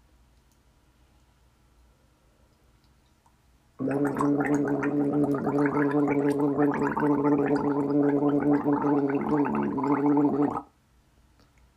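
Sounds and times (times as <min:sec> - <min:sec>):
throat gargling: 0:03.8 - 0:10.6.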